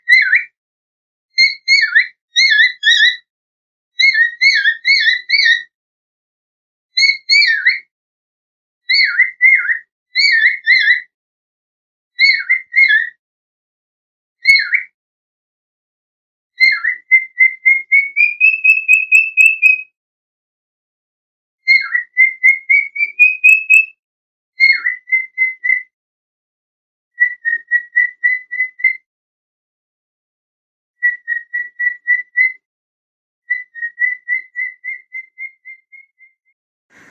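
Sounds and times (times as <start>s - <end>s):
bird whistling down-slurred notes: 0.1s - 0.5s, 1.4s - 3.2s, 4.0s - 5.7s, 7.0s - 7.9s, 8.9s - 11.1s, 12.2s - 13.2s, 14.4s - 15.0s, 16.6s - 19.9s, 21.7s - 23.9s, 24.6s - 25.9s, 27.2s - 29.0s, 31.0s - 32.6s, 33.5s - 36.3s.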